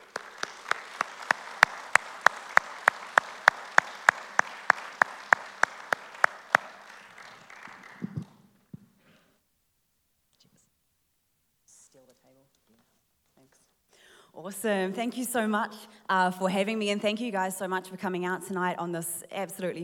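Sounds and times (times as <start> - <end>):
audience applause welcoming a speaker: 0.0 - 8.4
speech: 14.4 - 19.8.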